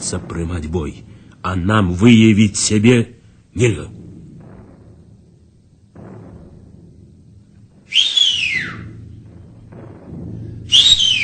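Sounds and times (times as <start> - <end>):
speech: 0.1 - 4.0
sentry whistling an alarm signal: 7.8 - 9.0, 10.6 - 11.2.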